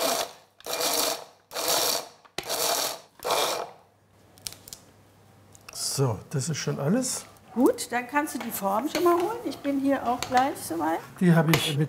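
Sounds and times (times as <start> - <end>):
grinder grinding walnut kernels and sugar into ground nuts: 0.0 - 3.8
speech: 6.0 - 11.8.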